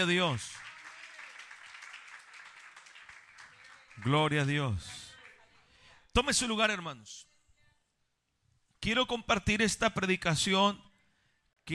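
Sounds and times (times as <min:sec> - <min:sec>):
speech: 0:00.0 - 0:00.6, 0:04.0 - 0:05.0, 0:06.2 - 0:07.3, 0:08.8 - 0:10.9
audience clapping in praise: 0:00.0 - 0:05.4.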